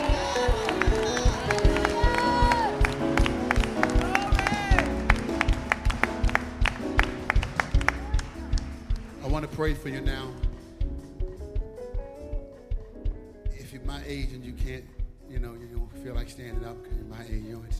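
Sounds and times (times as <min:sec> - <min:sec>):
voices singing: 0:00.0 - 0:02.9
audience clapping in rhythm: 0:00.0 - 0:11.4
music: 0:00.0 - 0:17.7
speech: 0:09.6 - 0:10.4, 0:14.1 - 0:17.7.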